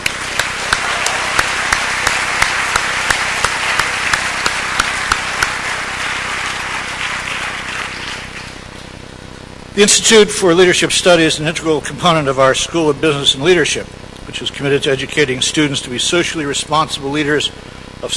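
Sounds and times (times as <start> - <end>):
audience applause: 0.0 - 8.9
speech: 9.8 - 18.1.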